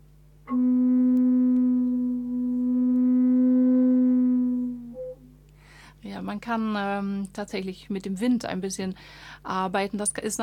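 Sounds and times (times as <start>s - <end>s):
organ pipe sounding a B note: 0.5s - 5.4s
speech: 6.2s - 10.4s.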